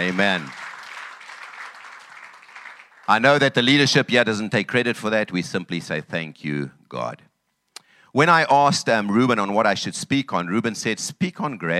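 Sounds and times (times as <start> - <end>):
speech: 0.0 - 0.6, 3.1 - 7.3, 8.1 - 11.7
audience applause: 0.0 - 3.5.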